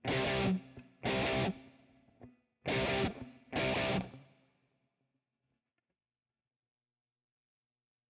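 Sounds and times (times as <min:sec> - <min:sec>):
guitar: 0:00.0 - 0:04.3.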